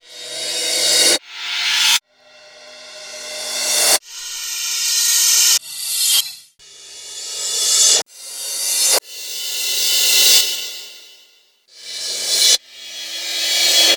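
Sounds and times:
reversed cymbal crashes: 0:00.0 - 0:13.9.

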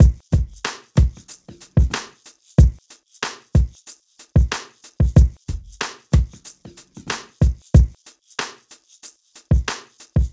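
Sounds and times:
hip hop drums: 0:00.0 - 0:08.7, 0:09.5 - 0:10.3.

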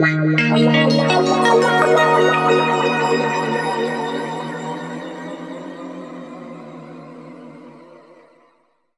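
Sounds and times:
guitar sample in D sharp: 0:00.0 - 0:06.8.

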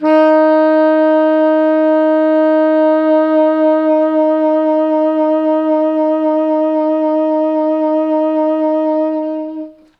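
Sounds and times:
tenor saxophone note D sharp three: 0:00.0 - 0:09.9.

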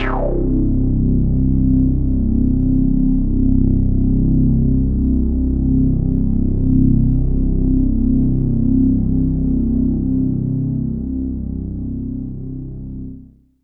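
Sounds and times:
synthesizers: 0:00.0 - 0:01.4
bass: 0:00.0 - 0:13.6.

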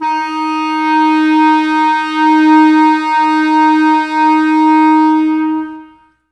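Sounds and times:
clarinets playing: 0:00.0 - 0:06.2.

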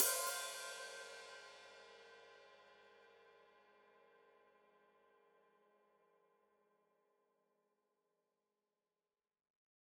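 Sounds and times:
open hi-hat played with foot: 0:00.0 - 0:02.0.

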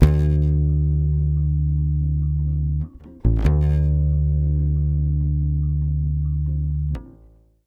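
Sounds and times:
Brazil bossa bass in D minor 7 at 140 BPM: 0:00.0 - 0:07.6.

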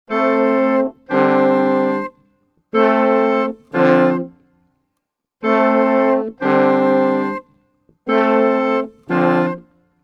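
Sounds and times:
orchestral woodwinds and brasses at 90 bpm: 0:00.1 - 0:02.2, 0:02.8 - 0:04.3, 0:05.4 - 0:07.5, 0:08.1 - 0:09.6.

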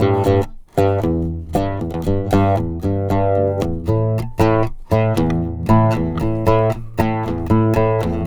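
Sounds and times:
Arabic oud: 0:00.0 - 0:08.2.

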